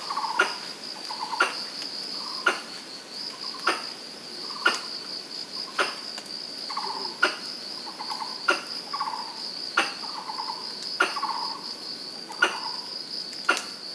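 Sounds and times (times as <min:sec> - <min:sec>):
Pallas's squirrel calls: 0:00.1 - 0:02.8, 0:03.4 - 0:03.9, 0:04.5 - 0:04.9, 0:05.7 - 0:11.6, 0:12.3 - 0:13.8.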